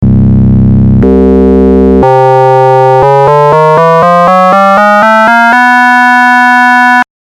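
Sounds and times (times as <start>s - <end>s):
FM synth sound: 0.0s - 7.0s.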